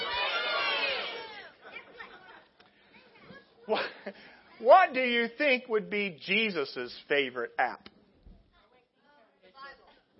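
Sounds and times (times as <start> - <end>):
crowd shouting: 0.0 - 1.6
speech: 3.7 - 7.9.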